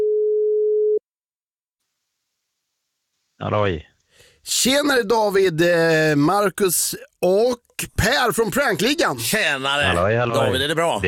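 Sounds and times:
telephone ringing tone after dialling a number: 0.0 - 1.0
speech: 3.4 - 11.0.

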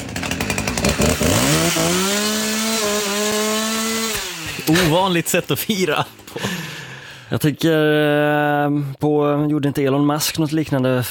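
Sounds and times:
chainsaw engine revving: 0.0 - 7.1
speech: 4.7 - 6.7, 7.3 - 11.0.

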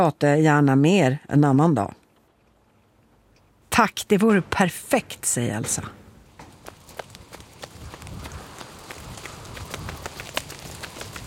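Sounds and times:
speech: 0.0 - 2.0, 3.8 - 6.0
running footsteps: 6.1 - 11.2.

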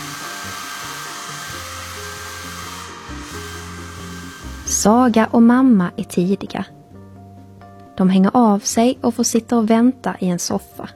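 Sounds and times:
hair dryer hissing: 0.0 - 5.2
speech: 4.7 - 6.8, 8.0 - 10.9.

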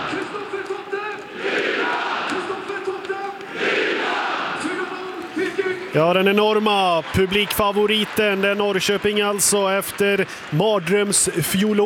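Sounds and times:
football crowd cheering: 0.0 - 11.8
speech: 6.0 - 11.8.

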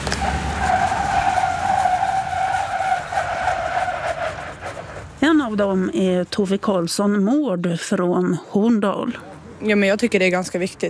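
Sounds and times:
tires screeching while a car brakes on a slippery track: 0.0 - 5.8
speech: 5.5 - 10.8.

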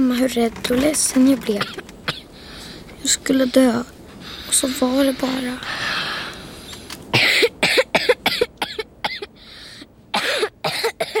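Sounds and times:
speech: 0.0 - 1.8, 3.1 - 5.9
heavy coughing: 1.6 - 2.3, 7.1 - 9.4, 10.1 - 11.1.

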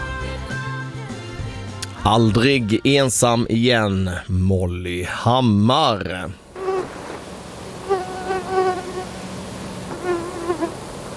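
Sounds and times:
speech: 2.0 - 6.4
mosquito buzzing in Blekinge Sweden: 6.6 - 7.2, 7.8 - 11.1.

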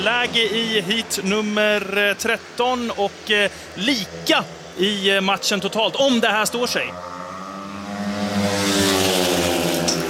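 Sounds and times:
speech: 0.0 - 7.1
speedway motorcycles racing: 0.0 - 10.0.

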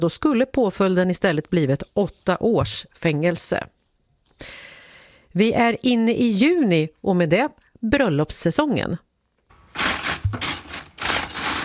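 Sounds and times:
speech: 0.0 - 3.8, 5.3 - 9.1
cutlery clattering after a large wedding: 9.8 - 11.6.

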